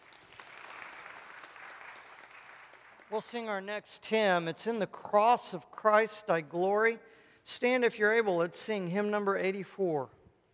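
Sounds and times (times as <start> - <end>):
audience applause at a church service: 0.0 - 3.1
speech: 3.1 - 10.2.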